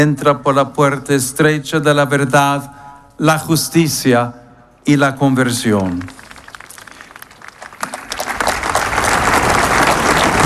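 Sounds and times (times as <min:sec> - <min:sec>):
speech: 0:00.0 - 0:06.2
applause from crowd in a square: 0:05.9 - 0:10.4.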